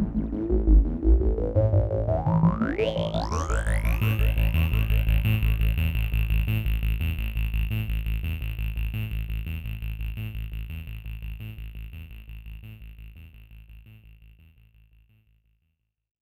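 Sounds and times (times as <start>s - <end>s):
filtered synth sequence: 0.0s - 11.9s.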